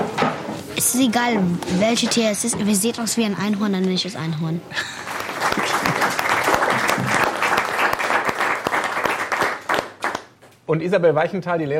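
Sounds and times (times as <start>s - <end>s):
speech: 0.8s - 5.0s, 10.7s - 11.7s
studio audience applause: 5.0s - 10.4s.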